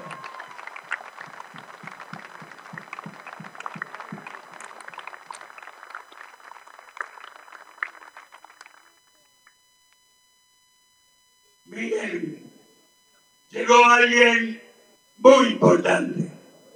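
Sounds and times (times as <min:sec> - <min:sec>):
crowd applause at a political rally: 0:00.0 - 0:09.0
speech: 0:13.8 - 0:14.5, 0:15.5 - 0:16.3.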